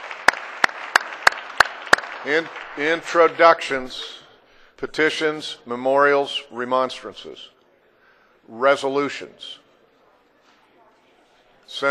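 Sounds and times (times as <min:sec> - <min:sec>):
loud claps in the Missouri Senate: 0:00.0 - 0:03.8
speech: 0:02.2 - 0:04.2, 0:04.8 - 0:07.5, 0:08.5 - 0:09.6, 0:11.7 - 0:11.8.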